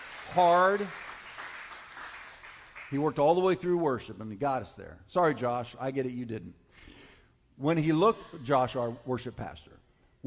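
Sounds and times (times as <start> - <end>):
crowd applauding: 0.0 - 3.2
speech: 0.3 - 1.1, 2.9 - 6.9, 7.6 - 10.2.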